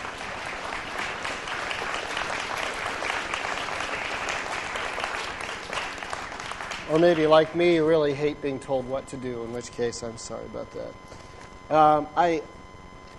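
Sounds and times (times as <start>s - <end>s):
audience applause: 0.0s - 8.0s
speech: 6.9s - 12.6s.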